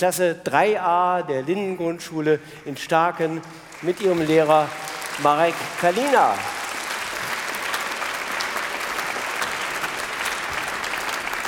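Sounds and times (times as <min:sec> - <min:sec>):
speech: 0:00.0 - 0:06.6
audience applause: 0:03.5 - 0:11.4.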